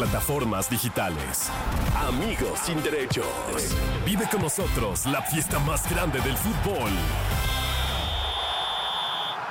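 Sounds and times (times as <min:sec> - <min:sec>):
speech: 0:00.0 - 0:07.4
referee's whistle blowing: 0:07.4 - 0:09.4.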